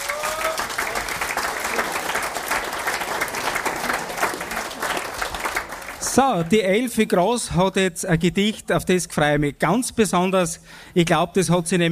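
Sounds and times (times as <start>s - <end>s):
audience applause: 0.0s - 6.2s
speech: 6.1s - 11.9s.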